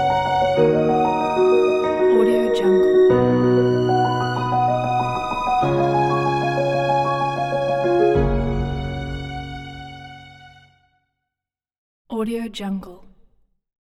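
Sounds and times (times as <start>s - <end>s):
uplifting inspirational sentimental music: 0.0s - 10.7s.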